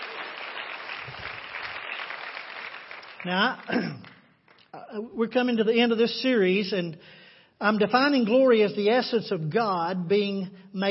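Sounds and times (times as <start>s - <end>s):
audience clapping: 0.0s - 4.7s
speech: 3.2s - 4.1s, 4.9s - 10.8s.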